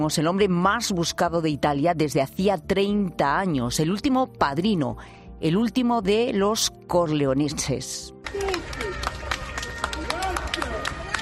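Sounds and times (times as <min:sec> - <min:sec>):
speech: 0:00.0 - 0:08.5
crowd applauding outdoors: 0:08.2 - 0:11.2
excited voices and shouts: 0:08.3 - 0:11.2.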